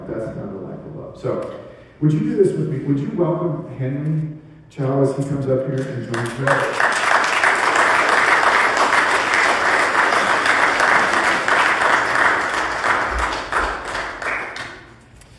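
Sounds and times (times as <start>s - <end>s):
speech: 1.2s - 6.8s
audience applause: 6.0s - 15.0s.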